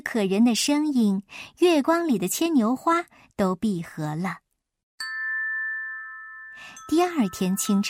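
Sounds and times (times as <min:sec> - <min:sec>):
speech: 0:00.0 - 0:04.4, 0:06.6 - 0:07.8
wind chime ringing outside the window: 0:05.0 - 0:07.8.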